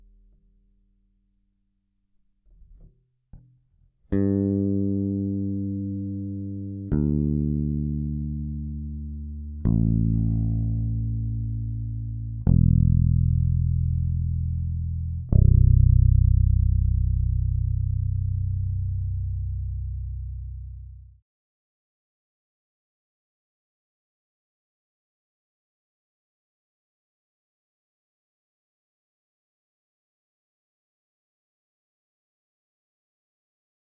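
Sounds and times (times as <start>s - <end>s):
electric bass with Phil Jones EQ high control: 4.1s - 21.2s.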